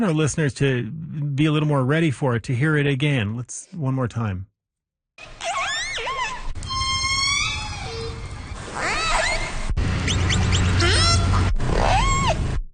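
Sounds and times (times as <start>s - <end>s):
speech: 0.0s - 4.5s
killer whale whistles: 5.7s - 12.4s
orca buzzy pulsed calls: 5.7s - 12.6s.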